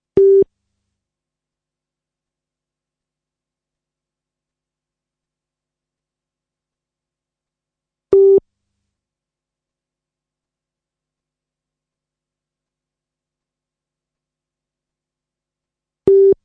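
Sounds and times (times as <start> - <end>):
beep test training beeps: 0.2 - 0.4, 8.1 - 8.4, 16.1 - 16.4.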